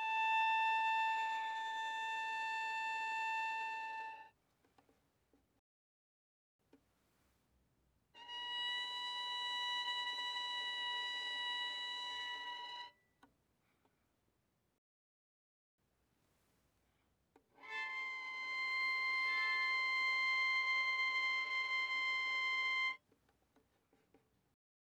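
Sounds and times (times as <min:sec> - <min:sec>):
violin bowed notes on the D string: 0:00.0 - 0:04.3, 0:08.2 - 0:13.0, 0:17.6 - 0:23.0.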